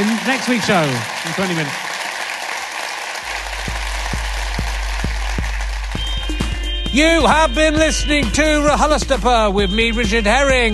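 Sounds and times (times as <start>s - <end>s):
speech: 0.0s - 1.9s, 6.9s - 10.7s
audience applause: 0.0s - 6.6s.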